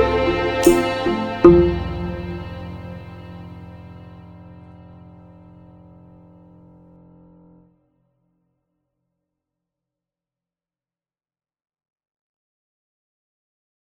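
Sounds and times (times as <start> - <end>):
ending credits major chord music: 0.0 - 5.2.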